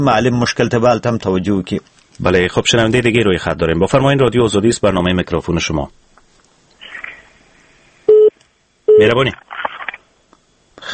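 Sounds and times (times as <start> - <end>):
speech: 0.0 - 6.0, 9.0 - 9.7
telephone busy tone after a call was cut off: 8.1 - 8.3.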